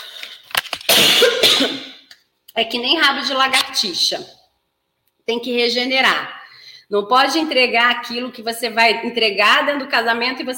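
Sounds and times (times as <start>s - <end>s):
person coughing after choking: 0.9s - 2.1s
speech: 2.6s - 4.4s, 5.3s - 10.5s.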